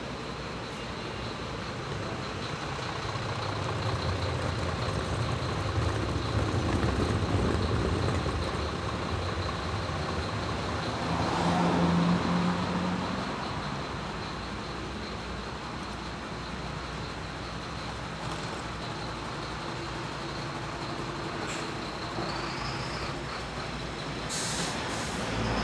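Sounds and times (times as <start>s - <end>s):
street ambience on a walk: 0.0s - 25.6s.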